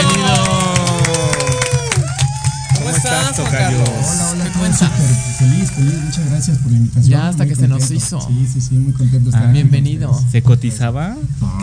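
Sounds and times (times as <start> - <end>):
applause: 0.0 - 5.2
speech: 4.5 - 11.6.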